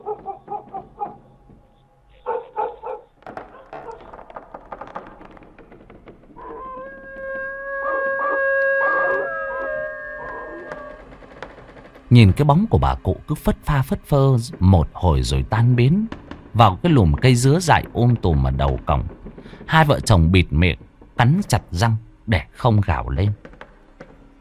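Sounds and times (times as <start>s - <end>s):
neighbour's dog barking: 0.0s - 1.2s, 2.2s - 4.1s
neighbour's dog howling: 0.0s - 1.2s, 2.2s - 4.1s, 6.4s - 11.2s
speech: 12.2s - 23.4s.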